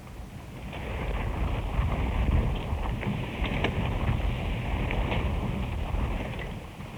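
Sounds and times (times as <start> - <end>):
wind driving a windmill: 0.0 - 6.9.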